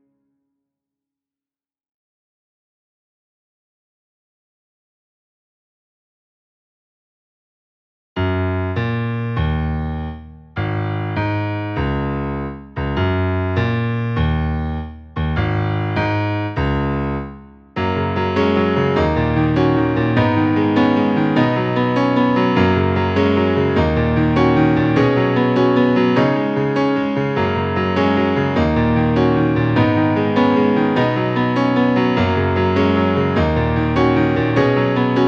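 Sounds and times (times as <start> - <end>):
scenic piano music: 8.2 - 35.2.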